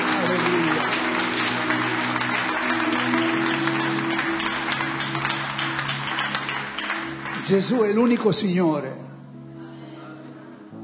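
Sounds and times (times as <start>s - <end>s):
audience applause: 0.0s - 8.4s
speech: 7.5s - 9.0s.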